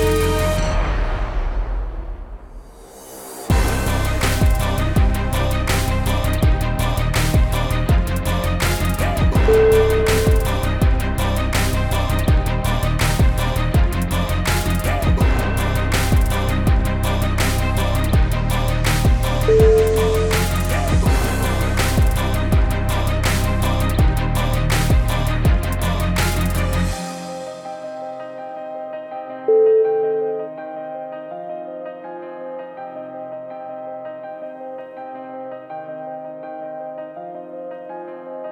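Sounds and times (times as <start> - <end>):
epic hip hop music: 0.0 - 29.3.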